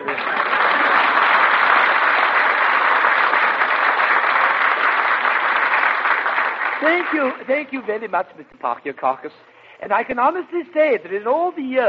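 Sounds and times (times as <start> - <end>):
audience clapping: 0.0 - 8.1
speech: 6.8 - 11.8.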